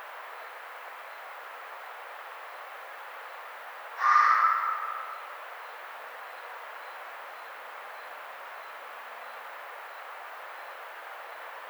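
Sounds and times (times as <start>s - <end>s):
red fox screaming: 4.0s - 5.4s.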